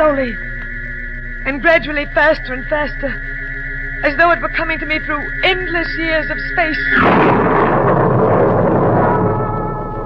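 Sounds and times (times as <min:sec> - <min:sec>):
speech: 0:00.0 - 0:00.5, 0:01.4 - 0:03.4, 0:04.0 - 0:07.5
ear-shattering thunderclap: 0:06.9 - 0:10.0.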